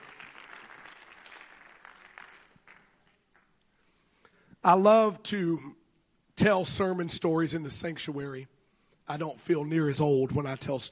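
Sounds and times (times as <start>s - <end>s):
audience applause: 0.0s - 3.6s
speech: 4.6s - 5.8s, 6.4s - 10.8s.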